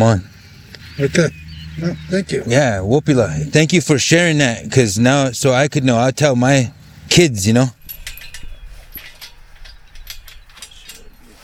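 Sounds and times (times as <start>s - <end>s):
speech: 0.0s - 0.3s, 1.0s - 7.8s
cemetery gate being locked, metallic clanking and ratcheting: 7.6s - 11.4s.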